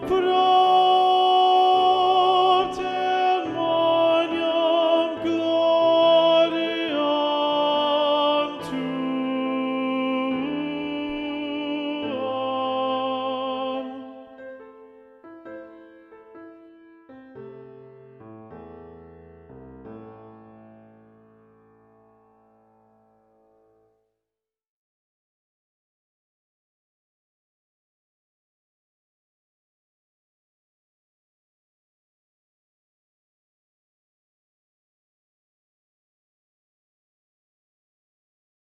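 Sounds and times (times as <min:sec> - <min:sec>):
contralto singing: 0:00.0 - 0:14.5.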